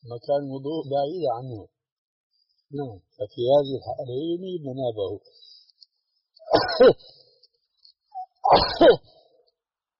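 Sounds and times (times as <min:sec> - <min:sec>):
speech: 0:00.0 - 0:01.8, 0:02.7 - 0:05.5, 0:06.5 - 0:07.2, 0:08.5 - 0:09.2
man sneezing during a religious lecture: 0:08.4 - 0:09.1.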